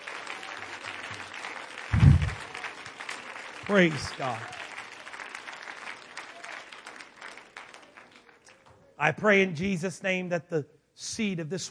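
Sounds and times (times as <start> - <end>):
crowd clapping hands: 0.0 - 9.0
low rumble: 1.9 - 2.4
speech: 3.7 - 4.6, 9.0 - 11.7.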